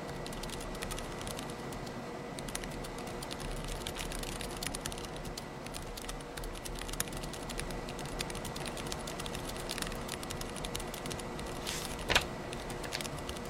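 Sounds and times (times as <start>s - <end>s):
typing in a late-night coffee bar: 0.1s - 13.4s
flipping through pages in a late-night coffee bar: 11.6s - 12.2s.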